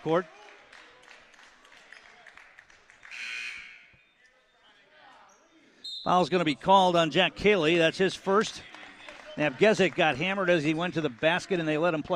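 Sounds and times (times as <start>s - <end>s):
speech: 0.0s - 0.4s, 6.0s - 8.7s, 9.4s - 12.1s
referee's whistle blast at basketball game: 3.1s - 4.1s, 5.8s - 6.3s.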